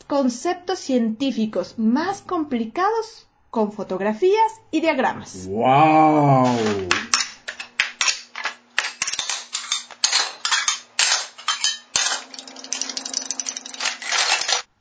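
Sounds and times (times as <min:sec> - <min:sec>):
speech: 0:00.1 - 0:07.0
metal pots clattering and falling: 0:06.5 - 0:14.7.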